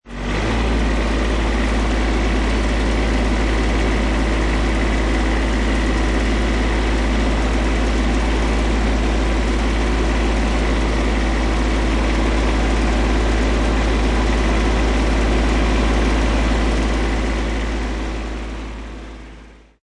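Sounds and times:
diesel tractor starting, manoeuvring and driving, on-board: 0:00.1 - 0:19.8.

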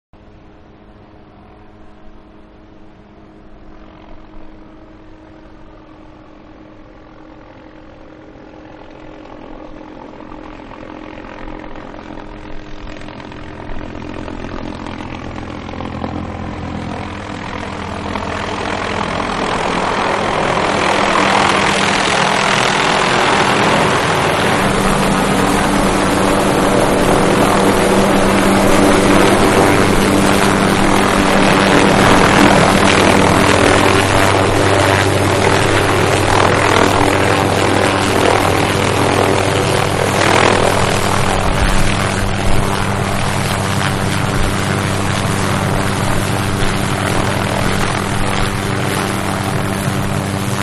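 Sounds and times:
military helicopter landing and idling: 0:00.2 - 0:50.6.

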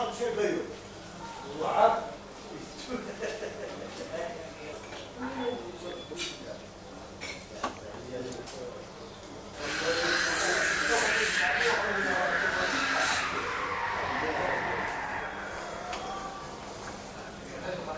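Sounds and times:
cafe atmosphere in Rabat Morocco: 0:00.5 - 0:17.9
television in a cafe: 0:04.2 - 0:17.9
espresso machine in a Rabat cafe: 0:09.6 - 0:11.6
traffic in Rabat Morocco: 0:09.6 - 0:17.5.

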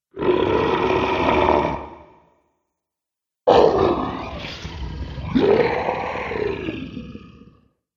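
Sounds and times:
dragon monster sounds: 0:00.1 - 0:02.2, 0:03.5 - 0:07.7.

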